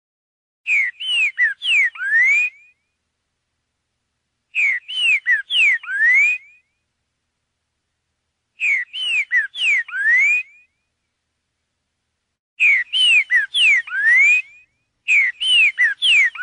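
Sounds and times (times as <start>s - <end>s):
green-winged saltator song: 0.7s - 3.0s, 4.5s - 6.8s, 8.6s - 10.9s, 12.6s - 16.4s.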